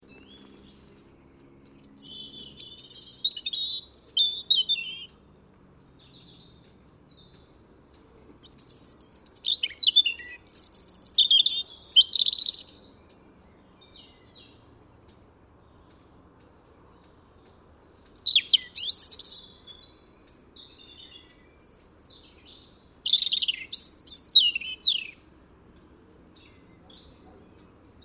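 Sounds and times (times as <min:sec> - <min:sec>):
European robin song, whistles and warbling: 0:02.0 - 0:05.1, 0:08.8 - 0:12.8, 0:18.2 - 0:19.5, 0:23.0 - 0:25.1.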